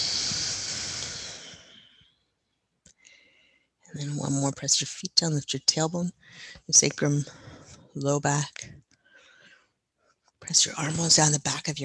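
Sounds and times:
long slow exhale during a breathing exercise: 0.0s - 2.1s
speech: 3.9s - 7.4s, 8.0s - 8.8s, 10.5s - 11.8s.

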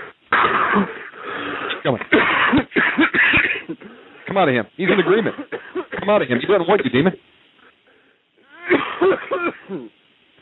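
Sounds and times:
deep raspy wheezy cough: 0.3s - 4.1s, 4.9s - 6.3s, 8.5s - 9.9s
speech: 0.8s - 1.0s, 1.9s - 2.6s, 4.4s - 7.2s.

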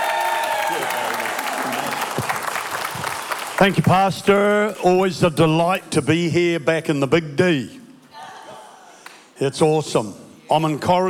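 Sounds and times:
church audience in Dallas applauding a pastor: 0.0s - 4.8s
speech: 3.6s - 7.8s, 9.4s - 11.0s.

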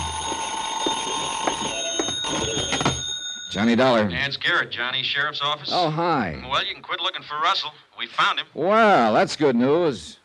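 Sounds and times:
telephone ringing: 0.0s - 4.1s
speech: 3.5s - 10.2s.

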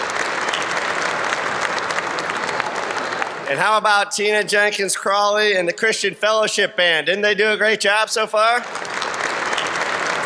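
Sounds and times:
audience applause: 0.0s - 4.7s, 8.4s - 10.2s
speech: 3.5s - 8.9s.

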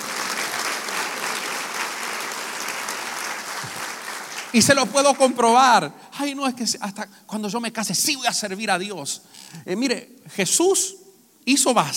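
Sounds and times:
loud audience applause: 0.0s - 4.9s
speech: 4.5s - 11.9s.

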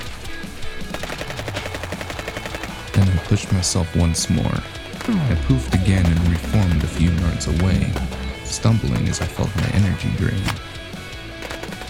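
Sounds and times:
rapid gunfire: 0.8s - 11.8s
speech: 3.3s - 10.7s.

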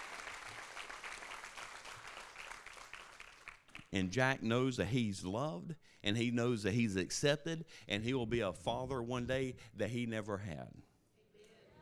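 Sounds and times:
audience applause: 0.0s - 3.8s
speech: 3.9s - 10.9s.

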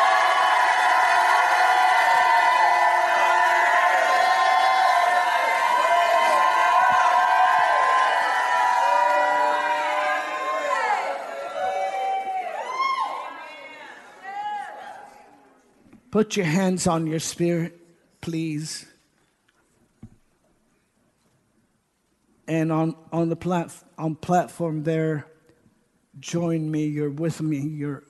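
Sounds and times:
large audience shouting and cheering: 0.0s - 15.4s
speech: 16.2s - 18.9s, 22.5s - 25.3s, 26.2s - 28.0s.

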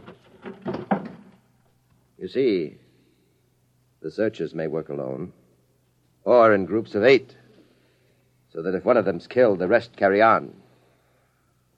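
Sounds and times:
chair shoved under a door: 0.0s - 1.4s
speech: 2.2s - 2.8s, 4.0s - 5.4s, 6.2s - 7.4s, 8.5s - 10.6s.

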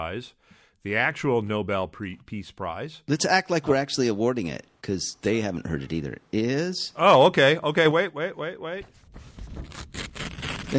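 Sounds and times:
speech: 0.0s - 9.9s
envelope being handled and opened: 9.3s - 10.7s.

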